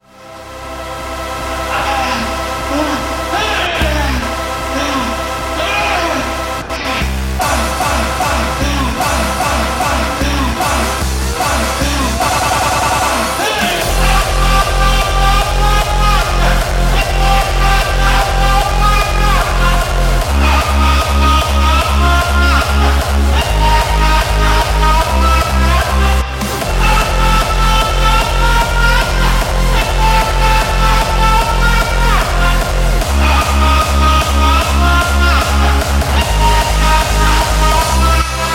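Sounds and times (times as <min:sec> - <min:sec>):
hardstyle dance music: 0:00.0 - 0:38.5.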